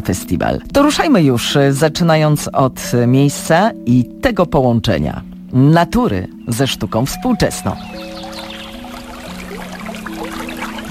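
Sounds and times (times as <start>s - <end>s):
speech: 0.0s - 8.1s
Bystrzyca river flowing in Lublin Poland: 7.2s - 10.8s.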